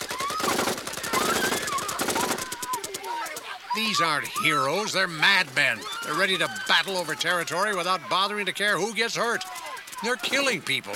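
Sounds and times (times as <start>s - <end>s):
automatic gunfire from the Minutemen firing on command: 0.0s - 3.3s
speech: 3.8s - 10.9s.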